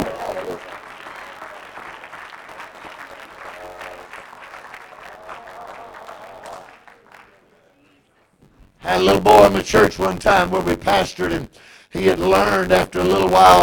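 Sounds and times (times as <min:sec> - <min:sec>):
audience clapping: 0:00.0 - 0:07.8
speech: 0:08.9 - 0:13.6.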